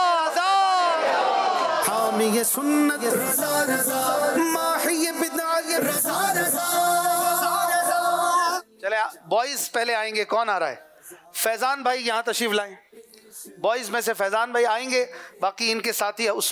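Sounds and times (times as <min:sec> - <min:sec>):
crowd at a team competition event chanting a slogan: 0:00.0 - 0:08.6
speech: 0:02.2 - 0:07.1, 0:08.8 - 0:16.5.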